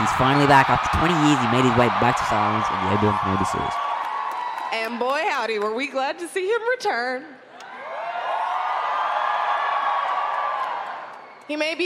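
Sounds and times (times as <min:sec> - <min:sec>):
speech: 0:00.0 - 0:03.8, 0:04.8 - 0:07.4, 0:11.5 - 0:11.8
large convention crowd cheering and whooping: 0:00.0 - 0:05.0, 0:07.5 - 0:11.5.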